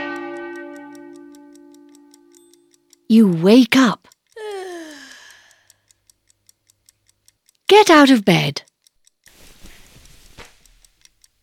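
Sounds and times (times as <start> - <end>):
clock bell striking midnight: 0.0 - 4.0
clock ticking: 0.0 - 11.4
speech: 3.1 - 4.1, 7.8 - 8.7.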